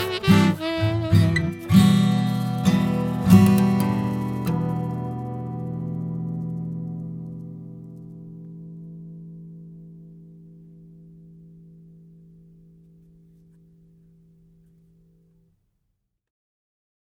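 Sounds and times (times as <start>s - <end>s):
instrumental music: 0.0s - 12.0s.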